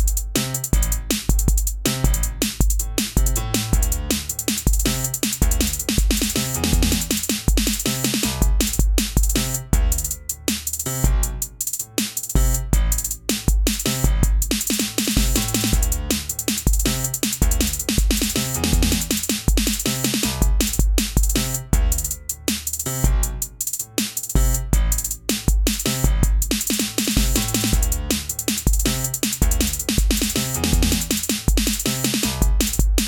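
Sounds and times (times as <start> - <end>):
hi-hats: 0.0 - 33.0
piano: 0.0 - 33.0.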